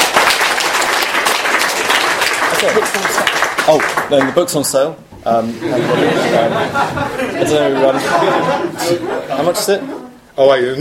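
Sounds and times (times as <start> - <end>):
audience round of applause: 0.0 - 4.4
speech: 2.6 - 10.8
laughter: 5.4 - 10.2.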